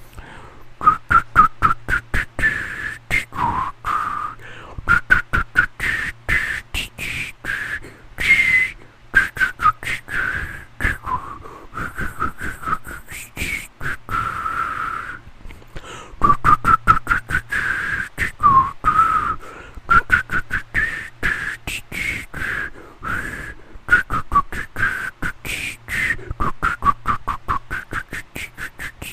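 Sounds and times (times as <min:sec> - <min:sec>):
whistled imitation of wind: 0:00.2 - 0:29.1.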